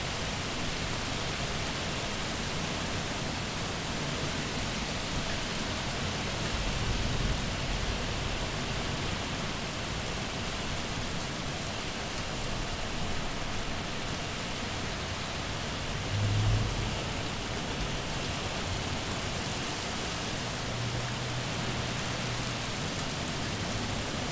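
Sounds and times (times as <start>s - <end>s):
summer storm: 0.0s - 24.3s
thunder: 16.0s - 17.3s.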